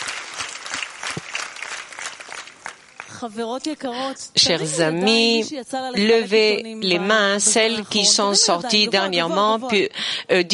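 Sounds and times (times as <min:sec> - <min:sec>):
audience applause: 0:00.0 - 0:03.2
speech: 0:03.2 - 0:10.5.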